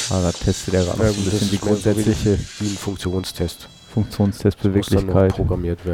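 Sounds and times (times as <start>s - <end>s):
speech: 0.1s - 5.9s
robot servo motors humming: 0.8s - 3.6s.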